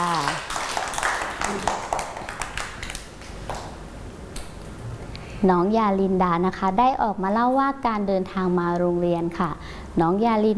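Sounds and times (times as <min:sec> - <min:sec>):
children clapping: 0:00.0 - 0:03.7
speech: 0:05.4 - 0:10.5.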